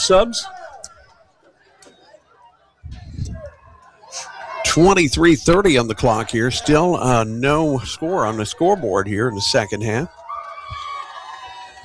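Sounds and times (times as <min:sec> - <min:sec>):
speech: 0:00.0 - 0:00.6, 0:04.2 - 0:10.8
soccer fans cheering in stands: 0:00.0 - 0:11.8.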